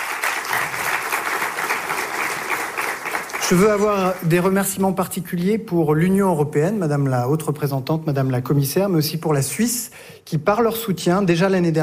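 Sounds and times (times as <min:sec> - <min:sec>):
audience applause: 0:00.0 - 0:04.8
speech: 0:03.5 - 0:11.8.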